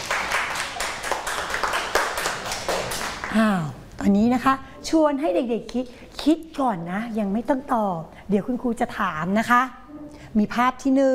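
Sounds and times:
children clapping hands: 0:00.0 - 0:03.4
speech: 0:03.3 - 0:11.1.

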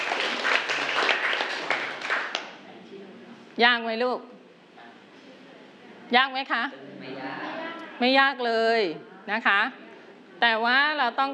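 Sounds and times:
people clapping hands: 0:00.0 - 0:02.6
speech: 0:03.6 - 0:04.4, 0:06.1 - 0:07.2, 0:08.0 - 0:09.8, 0:10.4 - 0:11.3.

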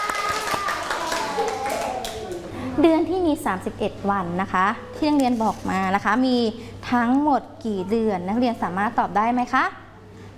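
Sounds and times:
students in a classroom clapping for themselves: 0:00.0 - 0:02.5
speech: 0:02.8 - 0:09.8.

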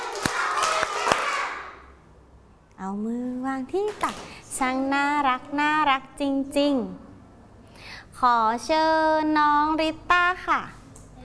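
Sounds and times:
children clapping on a teacher's count in a lesson: 0:00.0 - 0:01.8
speech: 0:02.8 - 0:07.1, 0:08.2 - 0:10.8.

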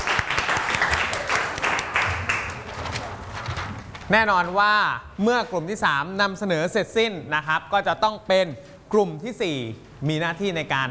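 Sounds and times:
audience applause: 0:00.0 - 0:02.9
speech: 0:04.1 - 0:10.8.

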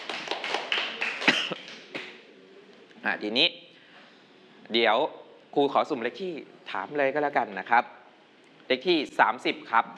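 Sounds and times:
clapping: 0:00.0 - 0:02.2
speech: 0:03.0 - 0:03.6, 0:04.7 - 0:08.0, 0:08.7 - 0:09.9.

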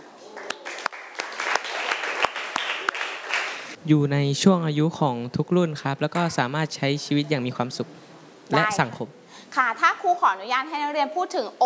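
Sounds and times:
classroom applause: 0:00.0 - 0:03.8
speech: 0:03.8 - 0:11.6.

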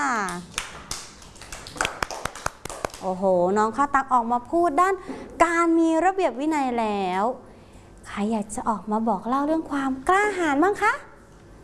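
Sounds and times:
children clapping for a classmate in a classroom: 0:00.2 - 0:03.1
speech: 0:03.0 - 0:07.5, 0:08.2 - 0:11.1.

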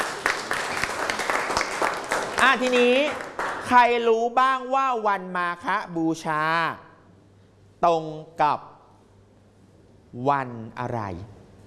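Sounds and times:
schoolchildren clapping in a classroom: 0:00.0 - 0:03.8
speech: 0:02.4 - 0:06.8, 0:07.8 - 0:08.7, 0:10.1 - 0:11.4.

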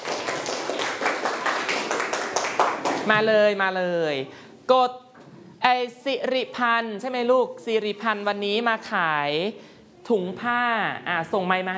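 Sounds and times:
classroom clapping: 0:00.0 - 0:03.3
speech: 0:03.0 - 0:05.0, 0:05.6 - 0:11.7.

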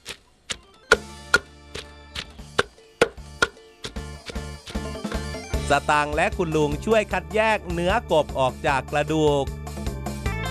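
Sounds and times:
pounding herbs in a mortar: 0:00.5 - 0:05.3
speech: 0:05.7 - 0:09.6.

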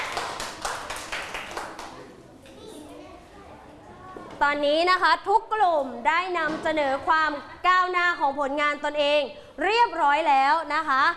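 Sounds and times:
students clapping for a group: 0:00.0 - 0:02.2
speech: 0:04.4 - 0:11.1.

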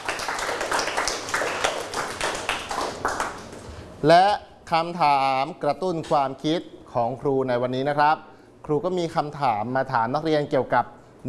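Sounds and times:
group of students clapping: 0:00.0 - 0:03.7
speech: 0:04.0 - 0:11.2.

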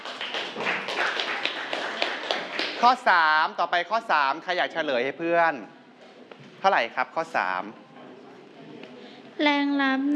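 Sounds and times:
students in a physics class clapping for a classmate: 0:00.0 - 0:03.0
speech: 0:02.8 - 0:05.8, 0:06.6 - 0:07.8, 0:09.4 - 0:10.1.

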